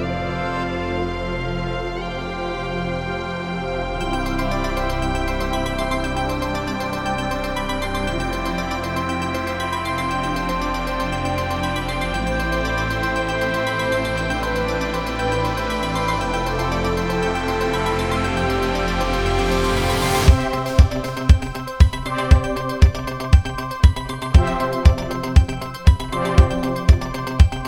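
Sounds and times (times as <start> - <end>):
instrumental music: 0.1 - 27.6.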